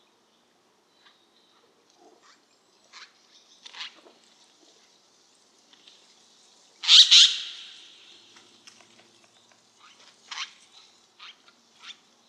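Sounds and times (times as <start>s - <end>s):
Siberian jay giving a harsh squawk: 6.8s - 7.9s.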